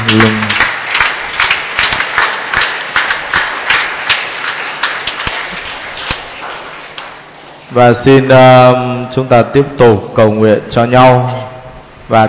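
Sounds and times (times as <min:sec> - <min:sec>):
audience applause: 0:00.0 - 0:07.0
speech: 0:00.1 - 0:00.4, 0:07.8 - 0:11.4, 0:12.1 - 0:12.2.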